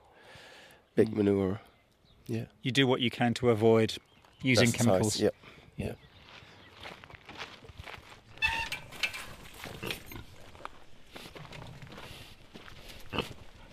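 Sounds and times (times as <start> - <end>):
speech: 1.0 - 1.7, 2.3 - 6.1
saddleback pigs munching: 11.2 - 13.7.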